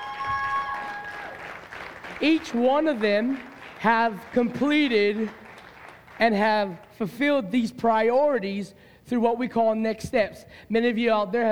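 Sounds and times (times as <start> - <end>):
audience round of applause: 0.0 - 6.2
speech: 2.2 - 5.4, 6.2 - 11.5.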